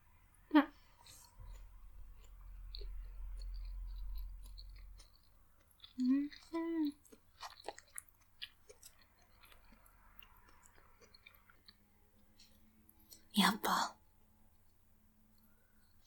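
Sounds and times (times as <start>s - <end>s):
chewing rice and a katsu cutlet with sweet sauce: 0.8s - 13.3s.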